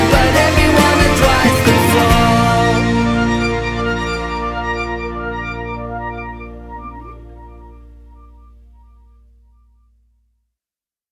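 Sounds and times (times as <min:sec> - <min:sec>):
alternative rock music: 0:00.0 - 0:07.9.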